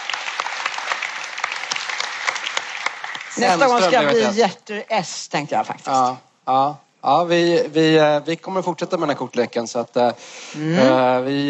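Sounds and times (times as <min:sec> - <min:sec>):
audience applause: 0:00.0 - 0:04.1
speech: 0:03.4 - 0:11.4.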